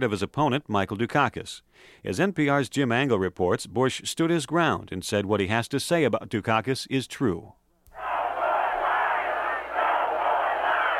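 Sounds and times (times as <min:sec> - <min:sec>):
speech: 0:00.0 - 0:07.6
crowd booing: 0:07.9 - 0:10.9.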